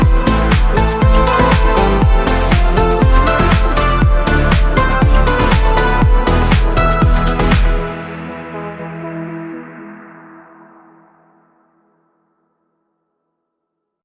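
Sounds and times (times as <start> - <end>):
karaoke backing track: 0.0 - 9.5.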